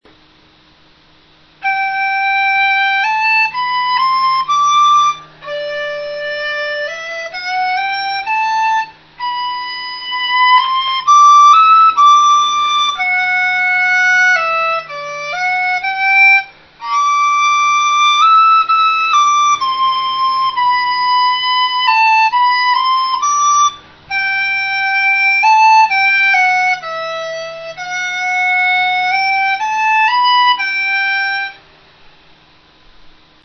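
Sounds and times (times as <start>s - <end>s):
dizi bamboo flute: 1.4s - 31.7s.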